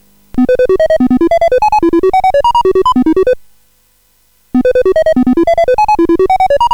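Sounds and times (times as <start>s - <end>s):
SID chip game music: 0.4s - 3.4s, 4.6s - 6.7s.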